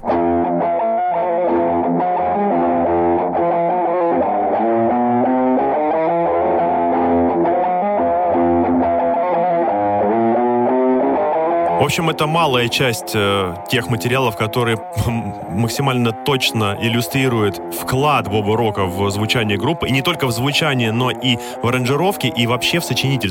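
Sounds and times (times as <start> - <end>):
distorted electric guitar riff in heavy metal style: 0.0 - 23.2
speech: 11.9 - 23.2.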